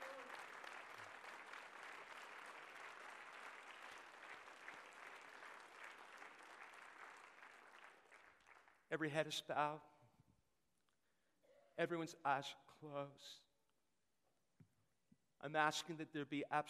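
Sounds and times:
audience clapping in praise: 0:00.0 - 0:08.9
speech: 0:08.9 - 0:09.9, 0:11.8 - 0:13.5, 0:15.4 - 0:16.6.

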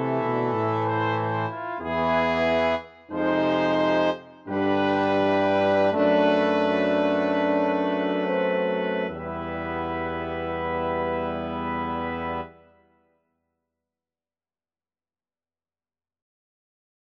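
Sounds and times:
brass choir playing a chorale: 0:00.0 - 0:12.7.

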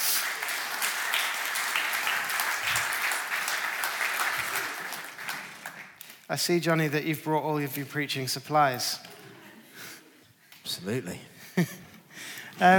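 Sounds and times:
audience applause greeting families coming onto a stage: 0:00.0 - 0:06.0
speech: 0:06.3 - 0:09.1, 0:10.8 - 0:11.8, 0:12.6 - 0:12.7.

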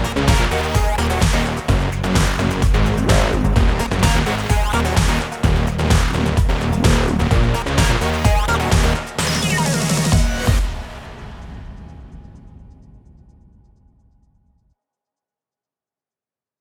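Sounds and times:
EDM racing music: 0:00.0 - 0:11.5.

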